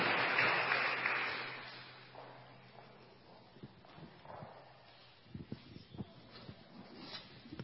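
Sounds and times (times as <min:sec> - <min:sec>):
audience applause: 0:00.0 - 0:02.1.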